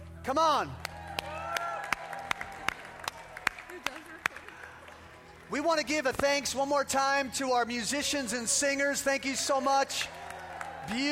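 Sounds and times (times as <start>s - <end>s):
speech: 0.2s - 1.3s, 5.5s - 10.2s, 10.9s - 11.1s
crowd clapping in rhythm: 0.7s - 6.7s, 8.9s - 11.1s.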